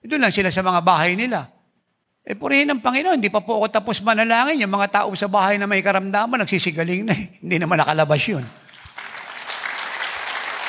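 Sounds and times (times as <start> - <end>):
speech: 0.1 - 1.5, 2.3 - 8.6
group applauding: 8.4 - 10.6.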